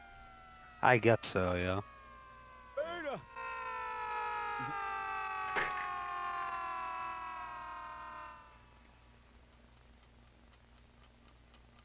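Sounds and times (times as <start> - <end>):
air raid alarm siren: 0.0 - 9.2
speech: 0.8 - 1.9.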